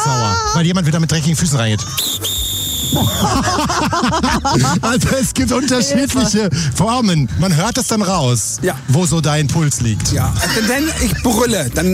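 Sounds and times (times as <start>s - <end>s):
speech: 0.6s - 11.9s
laughter: 1.6s - 6.6s, 10.3s - 11.9s
angry sharp whistle blast: 2.0s - 3.2s.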